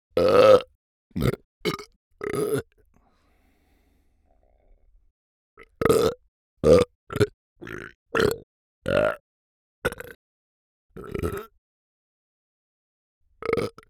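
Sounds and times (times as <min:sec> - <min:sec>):
burp recorded in an anechoic chamber: 0:00.2 - 0:02.8, 0:05.6 - 0:09.2, 0:09.9 - 0:10.2, 0:11.0 - 0:11.5, 0:13.4 - 0:13.8.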